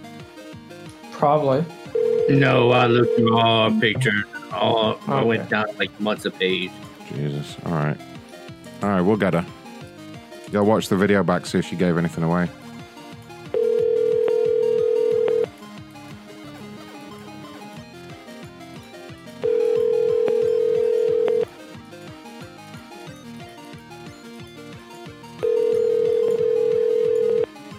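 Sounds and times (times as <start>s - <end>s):
speech: 1.2s - 8.1s, 8.8s - 9.6s, 10.5s - 12.6s
telephone ringing tone on a call: 1.9s - 4.1s, 13.5s - 15.5s, 19.4s - 21.5s, 25.4s - 27.5s.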